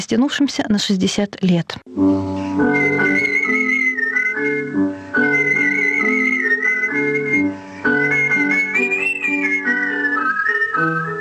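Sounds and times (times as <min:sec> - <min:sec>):
speech: 0:00.0 - 0:03.4
artistic melodic whistling performance: 0:02.5 - 0:11.1.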